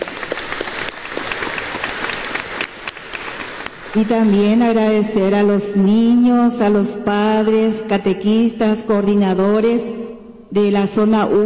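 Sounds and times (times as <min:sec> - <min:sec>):
audience applause: 0:00.0 - 0:04.0
speech: 0:03.9 - 0:11.4.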